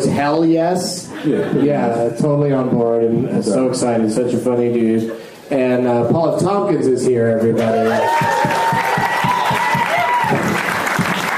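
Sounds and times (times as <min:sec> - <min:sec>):
speech: 0:00.1 - 0:08.8
clapping: 0:08.0 - 0:11.3.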